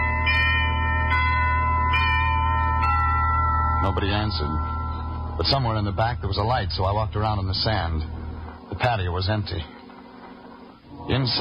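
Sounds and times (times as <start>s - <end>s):
doorbell chiming: 0.0s - 8.5s
speech: 3.8s - 4.8s, 5.4s - 9.7s, 11.1s - 11.3s.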